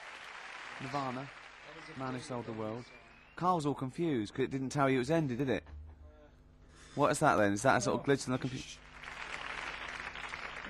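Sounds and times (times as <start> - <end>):
applause at the end of a track: 0.0 - 3.2, 8.8 - 10.6
speech: 0.8 - 5.8, 6.9 - 8.8.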